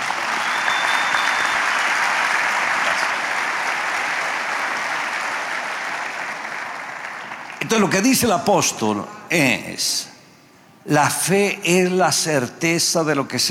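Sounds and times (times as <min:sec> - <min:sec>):
applause: 0:00.0 - 0:08.2
speech: 0:07.7 - 0:10.1, 0:10.8 - 0:13.4.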